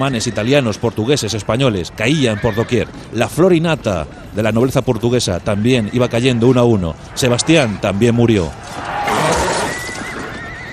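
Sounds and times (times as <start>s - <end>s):
speech: 0.0s - 8.9s
horse neighing: 2.2s - 3.0s, 8.6s - 10.7s.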